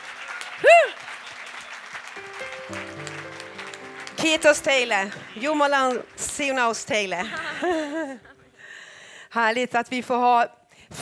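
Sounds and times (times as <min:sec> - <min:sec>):
warm applause from audience: 0:00.0 - 0:08.5
laughter: 0:02.4 - 0:08.6
speech: 0:04.3 - 0:08.3, 0:09.3 - 0:11.0.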